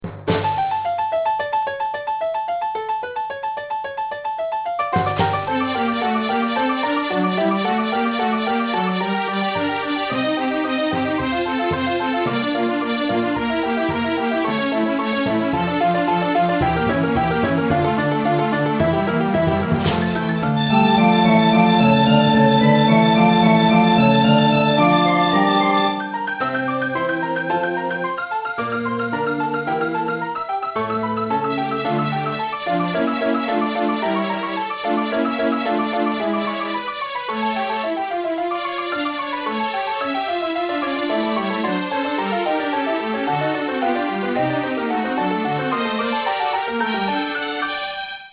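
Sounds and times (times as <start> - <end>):
fugue in D minor: 0.0 - 48.0.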